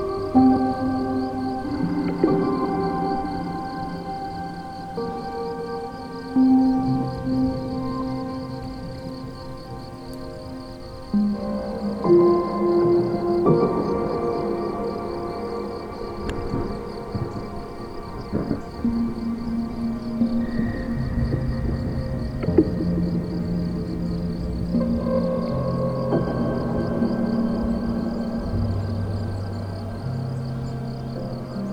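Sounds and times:
dark ambient drones of low sustained tones: 0.0 - 31.7.

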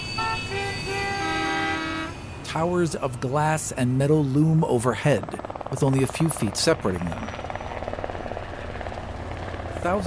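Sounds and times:
car horns honking: 0.0 - 2.2
city traffic rumble: 0.0 - 10.0
speech: 2.5 - 7.4, 9.8 - 10.0.

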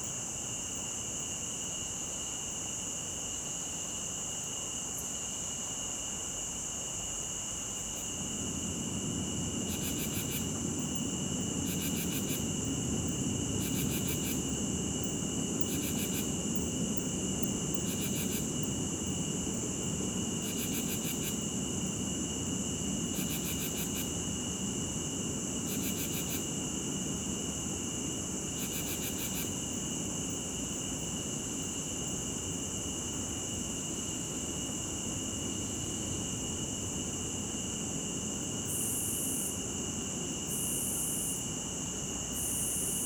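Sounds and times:
crickets and cicadas droning: 0.0 - 43.0.

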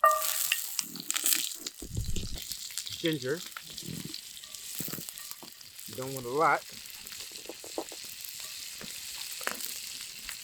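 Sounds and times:
butter sizzling in a hot pan: 0.0 - 10.4
speech: 3.0 - 3.6, 6.0 - 6.8.

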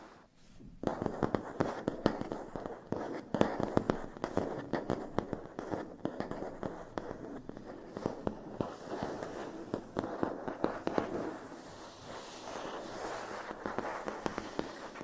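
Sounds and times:
scratchy tapping on matte plastic: 0.6 - 15.0.

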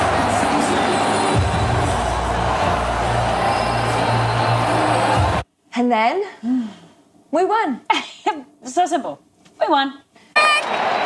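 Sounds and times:
stadium crowd cheering: 0.0 - 5.4, 10.4 - 11.0
speech: 5.8 - 11.0.

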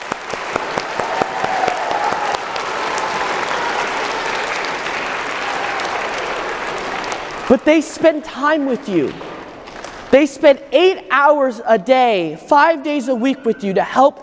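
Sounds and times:
applause for teachers: 0.0 - 7.8, 8.8 - 10.1
speech: 7.5 - 9.4, 10.1 - 14.2.

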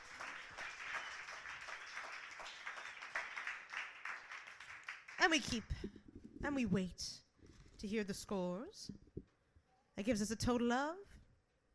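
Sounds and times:
applause for poets: 0.0 - 5.8
speech: 5.2 - 7.2, 7.8 - 9.0, 10.0 - 11.1.

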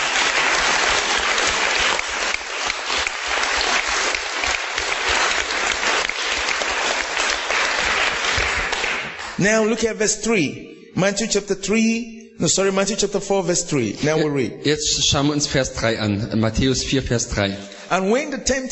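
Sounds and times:
congregation clapping in praise during a church service: 0.0 - 9.8
speech: 9.4 - 18.6.

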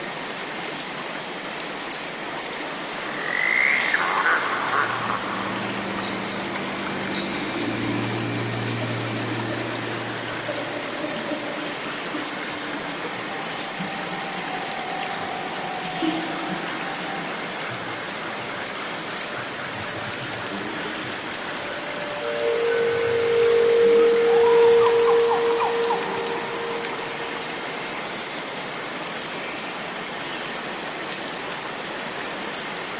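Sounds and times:
constant hiss: 0.0 - 32.9
cicadas buzzing: 2.0 - 32.9
animal calls possibly frogs: 3.0 - 28.6.

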